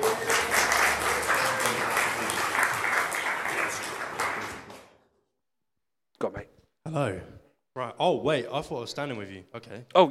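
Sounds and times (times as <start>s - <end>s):
audience applause: 0.0s - 4.9s
speech: 6.2s - 10.0s.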